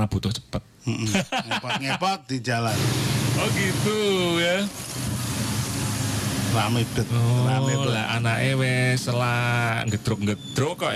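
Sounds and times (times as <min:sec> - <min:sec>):
speech: 0:00.0 - 0:05.1, 0:06.5 - 0:10.9
laughter: 0:00.9 - 0:02.2
motorcycle engine and road noise on a morning ride through Mijen City, Semarang: 0:02.7 - 0:07.7.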